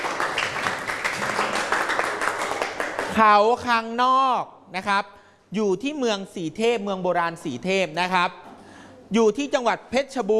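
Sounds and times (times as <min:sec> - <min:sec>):
class clapping hands: 0:00.0 - 0:03.2
speech: 0:03.2 - 0:08.4, 0:09.1 - 0:10.3.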